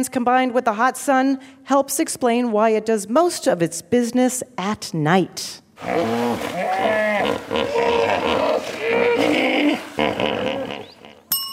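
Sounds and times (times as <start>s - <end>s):
speech: 0.0s - 10.6s
hippopotamus vocalizing: 5.8s - 11.3s.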